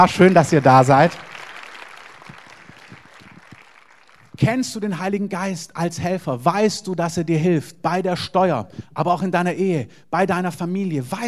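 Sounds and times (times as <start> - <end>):
speech: 0.0 - 1.4, 4.4 - 11.2
crowd applause: 0.0 - 4.5.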